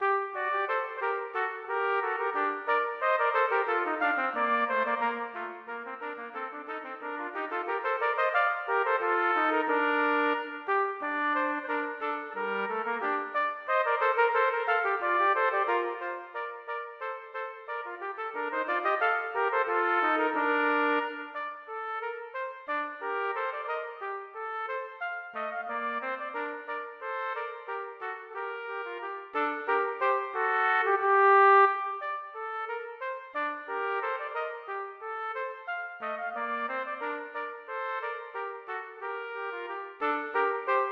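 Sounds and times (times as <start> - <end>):
trumpet duet playing a gavotte and bourrée: 0.0 - 40.9.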